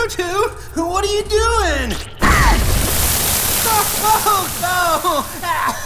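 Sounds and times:
speech: 0.2s - 2.1s, 4.0s - 5.7s
drain pipe bursting: 2.2s - 5.8s
water spraying: 2.2s - 5.8s.

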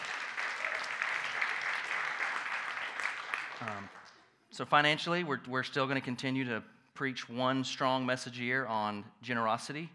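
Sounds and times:
audience clapping: 0.0s - 4.3s
speech: 3.6s - 4.0s, 4.6s - 9.9s.

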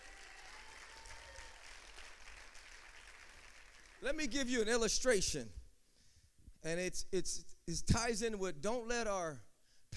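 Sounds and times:
audience clapping: 0.0s - 4.1s
speech: 4.0s - 5.6s, 6.6s - 9.9s.

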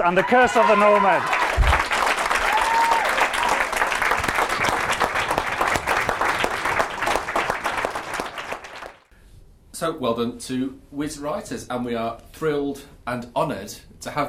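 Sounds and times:
speech: 0.0s - 1.4s, 9.8s - 14.2s
audience applause: 0.0s - 9.1s.

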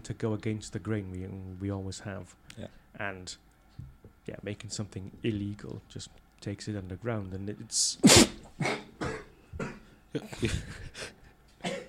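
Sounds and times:
speech: 0.0s - 8.9s, 10.1s - 11.1s
coughing and spluttering after inhaling a drink: 8.0s - 9.8s.

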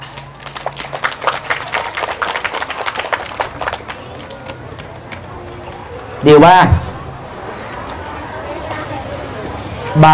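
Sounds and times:
audience applause: 0.2s - 5.5s
speech: 6.2s - 6.9s.

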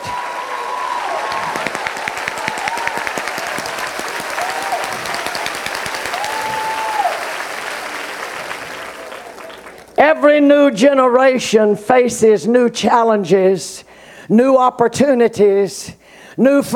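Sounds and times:
audience clapping hands: 0.0s - 10.0s
speech: 10.2s - 16.7s.

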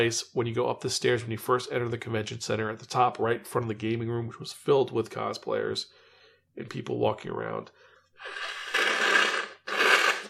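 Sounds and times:
speech: 0.0s - 6.0s, 6.6s - 8.6s
person snorting to clear their nose: 8.2s - 10.2s.

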